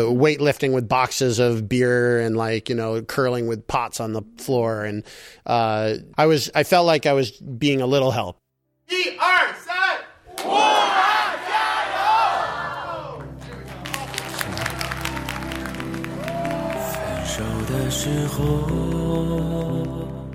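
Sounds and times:
speech: 0:00.0 - 0:09.3, 0:17.9 - 0:20.0
crowd chanting a slogan: 0:10.3 - 0:15.1, 0:16.2 - 0:18.3.

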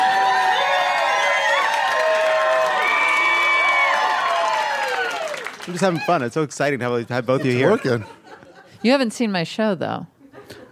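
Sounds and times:
crowd cheering: 0:00.0 - 0:06.5
speech: 0:05.7 - 0:08.2, 0:08.8 - 0:10.6
laughter: 0:07.0 - 0:08.9.

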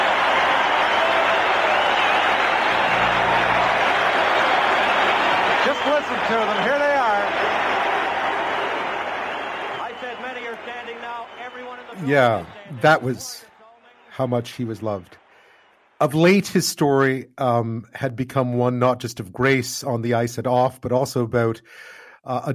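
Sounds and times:
arena crowd applauding at Maple Leaf Gardens: 0:00.0 - 0:16.4
speech: 0:12.1 - 0:13.5, 0:14.2 - 0:15.2, 0:16.0 - 0:22.5.

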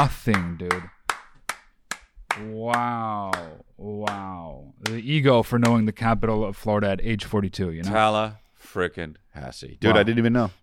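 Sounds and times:
speech: 0:00.0 - 0:01.0, 0:02.4 - 0:10.6
person clapping hands: 0:00.0 - 0:05.0, 0:05.6 - 0:05.8.

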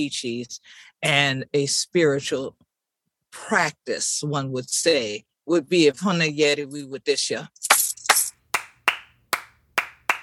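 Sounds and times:
speech: 0:00.0 - 0:02.6, 0:03.3 - 0:07.8
Gullah Geechee Sea Islands polyrhythmic hand claps: 0:07.7 - 0:10.2.

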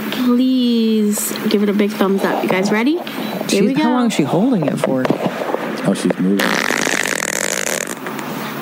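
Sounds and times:
speech: 0:00.3 - 0:06.7
fart: 0:06.4 - 0:08.1.

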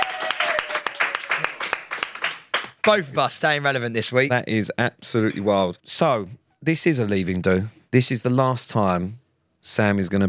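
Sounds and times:
round of applause: 0:00.0 - 0:03.1
speech: 0:02.8 - 0:10.2.

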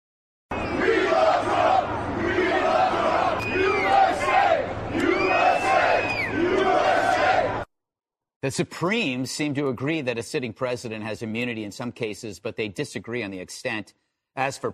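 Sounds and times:
construction workers cheering and shouting: 0:00.5 - 0:07.7
speech: 0:08.4 - 0:14.7.

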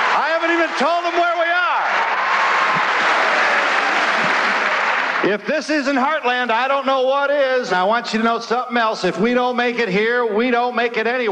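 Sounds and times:
studio audience applause: 0:00.0 - 0:05.3
speech: 0:00.4 - 0:01.5, 0:05.2 - 0:11.2.

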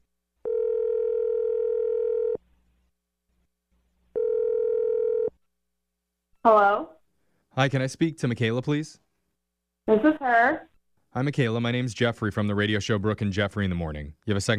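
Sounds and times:
telephone dial tone: 0:00.4 - 0:02.4, 0:04.2 - 0:05.3
speech: 0:07.6 - 0:09.0, 0:09.9 - 0:14.5.

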